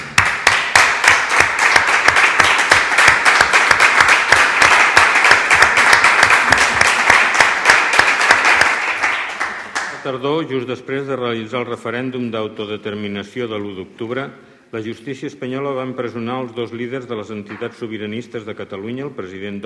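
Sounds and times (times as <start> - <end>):
audience applause: 0.0 - 10.0
speech: 10.1 - 19.6.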